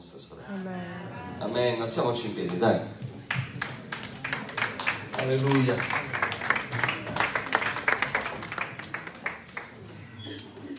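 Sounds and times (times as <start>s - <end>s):
speech: 0.0s - 3.0s, 5.2s - 6.1s
church audience applause: 3.2s - 10.7s.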